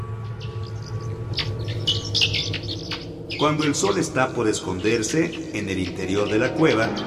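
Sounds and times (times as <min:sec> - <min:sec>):
bats squeaking and whistling in a cave: 0:00.2 - 0:07.0
speech: 0:03.4 - 0:07.0.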